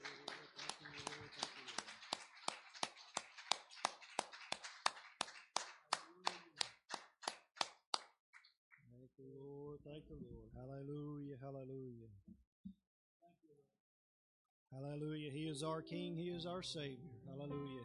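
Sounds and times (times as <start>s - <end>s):
audience clapping hands in worship: 0.0s - 8.9s
speech: 10.0s - 12.4s, 14.8s - 17.8s.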